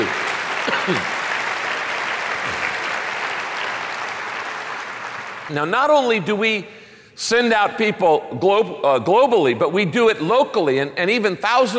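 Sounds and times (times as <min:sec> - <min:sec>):
audience applauding: 0:00.0 - 0:05.5
speech: 0:00.7 - 0:01.2, 0:05.5 - 0:11.7.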